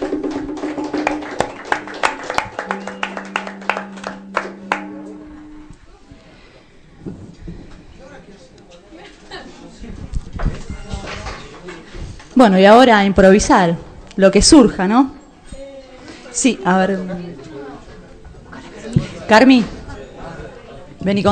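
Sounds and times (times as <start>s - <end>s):
audience applause: 0.0s - 5.5s
speech: 12.4s - 15.2s, 16.4s - 17.5s, 19.3s - 19.8s, 21.0s - 21.2s.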